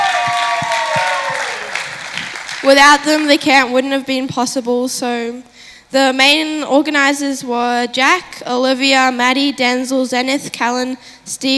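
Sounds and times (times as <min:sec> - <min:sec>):
crowd clapping and cheering for camp leaders and organizers: 0:00.0 - 0:03.7
speech: 0:02.6 - 0:11.5.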